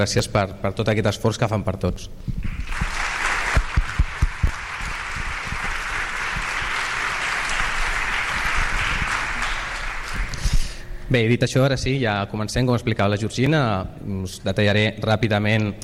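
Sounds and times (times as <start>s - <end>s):
speech: 0.0s - 2.9s, 11.1s - 15.8s
audience applause: 2.5s - 10.6s.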